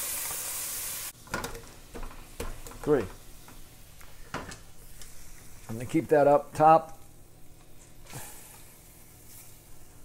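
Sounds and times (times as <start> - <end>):
garlic and tofu sizzling in a pan: 0.0 - 1.2, 1.8 - 5.7, 7.4 - 10.0
stirring and scraping in pan: 1.3 - 5.8, 7.6 - 10.0
speech: 2.8 - 3.2, 5.7 - 7.0.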